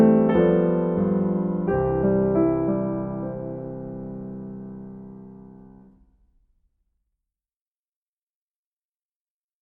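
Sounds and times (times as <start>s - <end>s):
live piano accompaniment: 0.0s - 6.0s.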